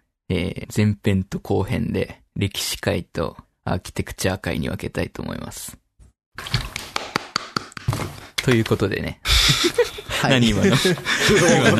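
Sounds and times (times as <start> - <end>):
speech: 0.3 - 5.8, 6.4 - 6.6, 8.4 - 11.7
single hand clap echoing in room: 6.7 - 8.8
laughter: 9.3 - 11.7.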